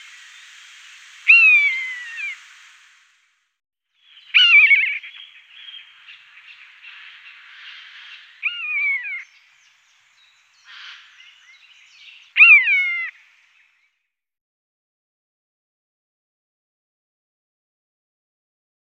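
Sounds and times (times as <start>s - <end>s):
common buzzard calling in short hoarse notes: 1.2s - 2.4s, 4.3s - 5.2s, 6.8s - 9.2s, 12.4s - 13.1s.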